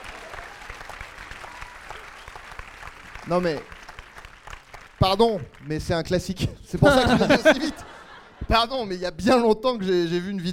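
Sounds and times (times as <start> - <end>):
applause from a group: 0.0 - 6.3
speech: 3.3 - 3.7, 5.0 - 7.9, 8.5 - 10.5
laughter: 6.8 - 8.9.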